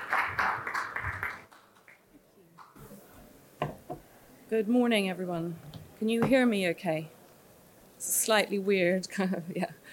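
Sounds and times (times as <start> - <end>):
audience applause: 0.0 - 2.0
speech: 4.5 - 7.2, 8.0 - 9.8.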